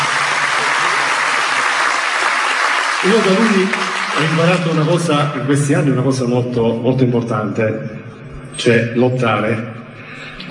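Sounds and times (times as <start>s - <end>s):
audience applauding at an award tribute: 0.0s - 5.3s
speech: 3.0s - 9.8s.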